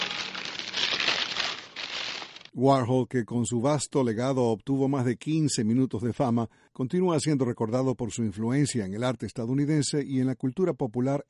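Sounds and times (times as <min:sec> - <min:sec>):
Burger King paper bag being opened: 0:00.0 - 0:02.5
speech: 0:02.6 - 0:11.2.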